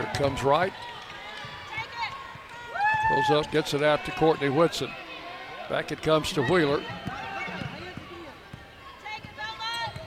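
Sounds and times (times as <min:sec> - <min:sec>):
speech: 0:00.2 - 0:01.0, 0:03.0 - 0:05.0, 0:05.7 - 0:07.2
play-by-play commentary: 0:03.0 - 0:05.0, 0:05.6 - 0:08.4
basketball dribbling during an MTSU vs. Belmont women's college game: 0:06.8 - 0:10.0.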